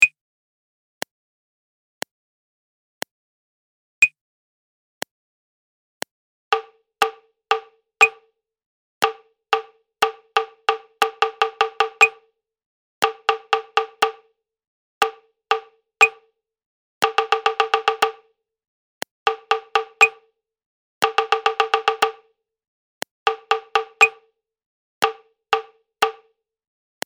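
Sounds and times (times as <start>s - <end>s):
prepared rhythm: 6.6s - 8.2s, 9.0s - 12.2s, 13.0s - 14.2s, 17.0s - 18.2s, 19.3s - 20.2s, 21.0s - 22.3s, 23.3s - 24.2s, 25.0s - 26.2s.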